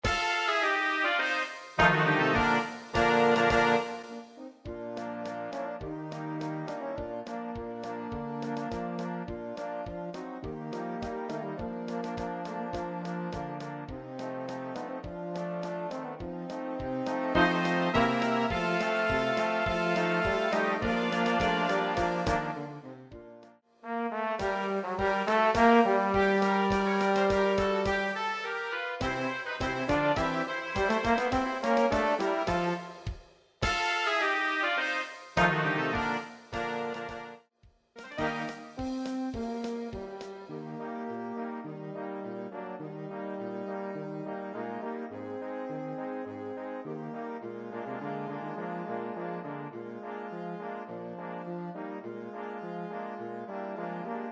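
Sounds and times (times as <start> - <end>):
polka music: 0.0 - 54.3.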